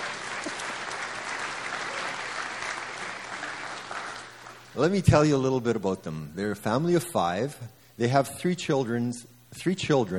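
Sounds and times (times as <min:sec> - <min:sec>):
audience applause: 0:00.0 - 0:04.7
speech: 0:04.8 - 0:10.1.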